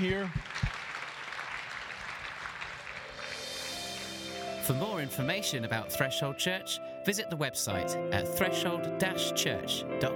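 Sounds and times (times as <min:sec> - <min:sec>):
speech: 0:00.0 - 0:00.6, 0:04.7 - 0:10.1
audience hand clapping: 0:00.0 - 0:03.7.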